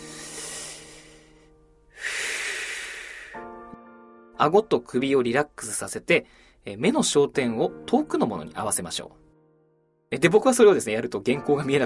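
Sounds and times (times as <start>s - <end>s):
long deep breaths in an eye relaxation exercise: 0.0s - 3.7s, 6.3s - 6.6s
speech: 4.4s - 9.3s, 10.1s - 11.8s.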